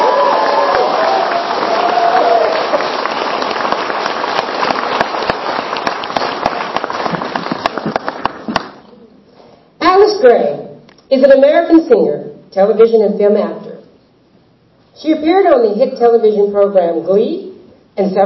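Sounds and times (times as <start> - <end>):
cheering and whistles: 0.0 - 3.2
large crowd clapping for volunteers: 0.0 - 8.9
speech: 11.2 - 13.6, 15.0 - 18.2.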